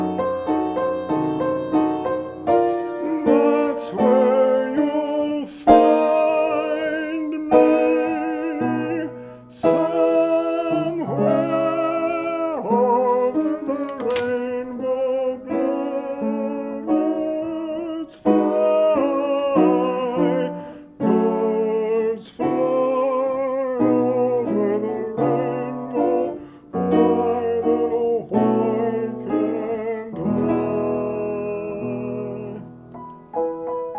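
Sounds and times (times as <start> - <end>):
tenor singing: 0.0 - 33.3.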